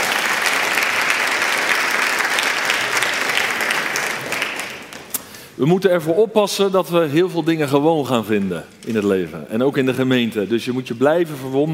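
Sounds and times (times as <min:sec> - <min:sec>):
audience applause: 0:00.0 - 0:05.3
speech: 0:05.6 - 0:11.7.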